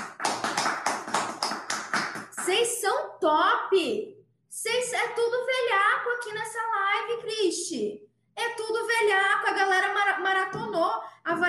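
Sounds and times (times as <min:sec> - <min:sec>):
hand clapping applause: 0:00.0 - 0:02.5
speech: 0:02.6 - 0:11.4.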